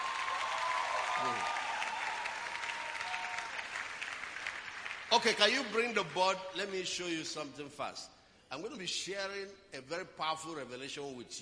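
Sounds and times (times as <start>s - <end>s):
audience clapping: 0.0s - 7.0s
speech: 1.2s - 1.6s, 5.1s - 11.4s.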